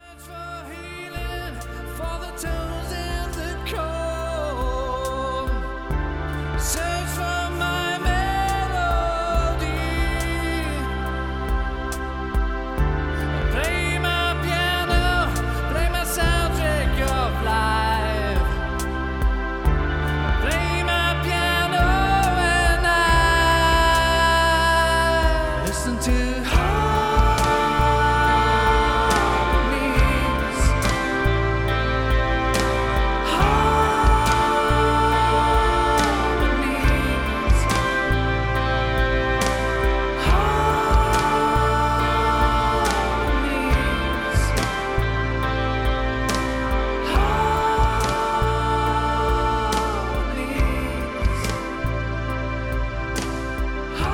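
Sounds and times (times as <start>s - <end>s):
musical harmonies: 0.0s - 54.1s.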